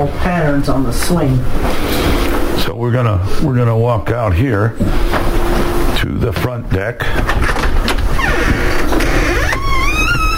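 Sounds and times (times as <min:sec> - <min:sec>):
speech: 0:00.0 - 0:05.4, 0:06.0 - 0:07.6
screechy door opening: 0:07.4 - 0:10.3.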